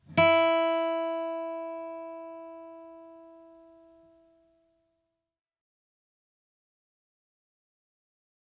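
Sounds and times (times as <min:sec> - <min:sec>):
guitar being tuned: 0:00.0 - 0:04.5.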